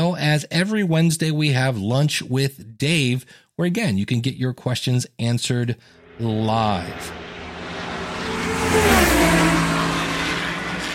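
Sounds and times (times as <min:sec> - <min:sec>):
speech: 0:00.2 - 0:07.2
white minivan driving up Route 77 in Ohio: 0:06.0 - 0:10.9.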